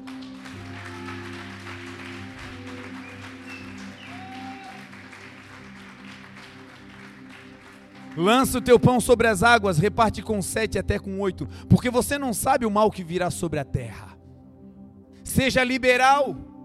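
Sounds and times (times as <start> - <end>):
audience applause: 0.0 - 8.8
sustained low musical tones: 0.0 - 16.6
speech: 8.2 - 14.2, 15.4 - 16.5.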